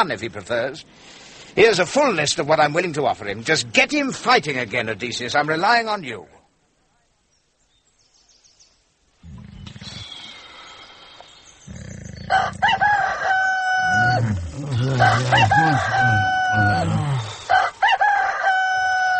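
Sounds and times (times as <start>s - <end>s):
speech: 0.0s - 6.4s, 14.6s - 17.2s
low rumbling growl: 11.6s - 13.2s, 13.8s - 17.5s
rooster crowing alarm: 12.3s - 19.1s.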